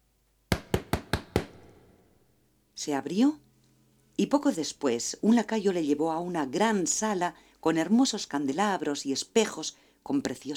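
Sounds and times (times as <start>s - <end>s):
knocking on a large ivory door: 0.5s - 1.9s
speech: 2.8s - 3.5s, 4.2s - 10.5s.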